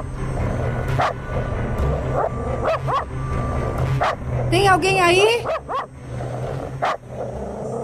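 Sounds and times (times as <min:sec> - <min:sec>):
steady low rumble: 0:00.0 - 0:07.8
dog barking and whining: 0:01.0 - 0:01.2, 0:02.0 - 0:03.2, 0:03.9 - 0:04.2, 0:05.4 - 0:07.8
speech: 0:04.5 - 0:05.9.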